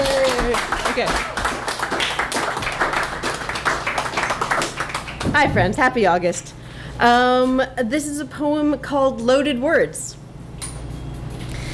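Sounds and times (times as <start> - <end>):
audience applause for a poet at a poetry reading: 0.0 - 5.4
speech: 1.0 - 1.4, 5.4 - 10.1.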